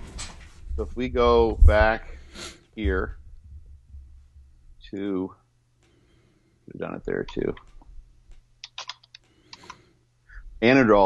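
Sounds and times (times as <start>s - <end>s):
speech: 0.8s - 3.2s, 4.9s - 5.4s, 6.7s - 7.7s, 10.6s - 11.0s
keystrokes on a computer keyboard typing a search: 8.6s - 9.8s.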